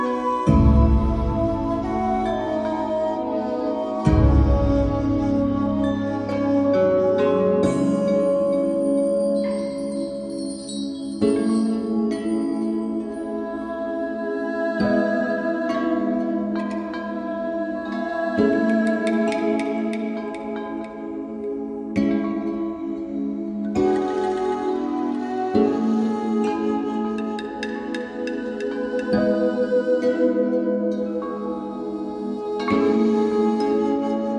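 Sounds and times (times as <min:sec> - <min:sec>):
relaxing forest music with Japanese ambience: 0:00.0 - 0:34.3.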